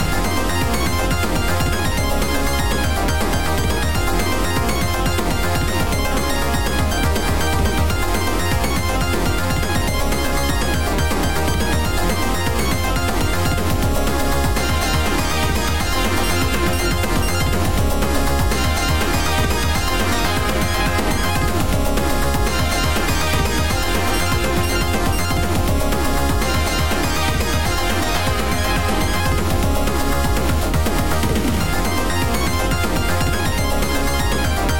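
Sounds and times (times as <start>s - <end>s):
battle music: 0.0s - 34.7s.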